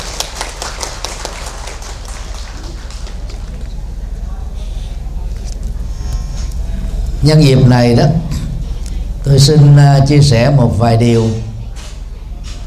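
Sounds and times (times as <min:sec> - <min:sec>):
audience applause: 0:00.0 - 0:03.8
speech: 0:07.2 - 0:08.3, 0:09.3 - 0:11.4.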